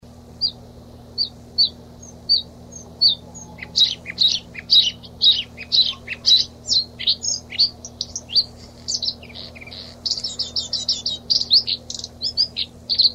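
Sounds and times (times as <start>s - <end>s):
bluethroat singing tinkling notes and buzzy twittering phrases: 0.4s - 13.1s.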